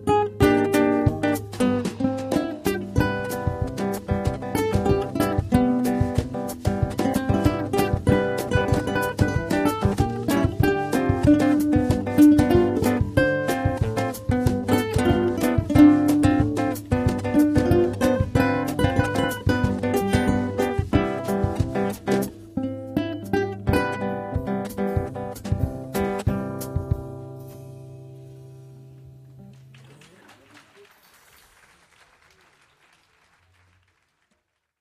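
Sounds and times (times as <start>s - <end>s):
samba music: 0.0s - 22.6s, 23.3s - 27.5s.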